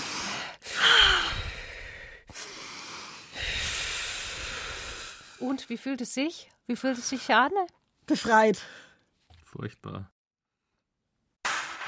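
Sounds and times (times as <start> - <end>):
deep breathing in and out: 0.0 - 5.4
speech: 5.4 - 8.9, 9.5 - 10.1.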